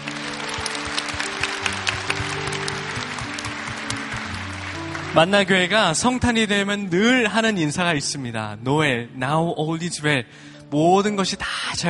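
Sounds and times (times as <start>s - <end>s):
large audience applause: 0.0s - 6.1s
sustained low instrumental chords: 0.0s - 9.2s
speech: 5.2s - 11.8s.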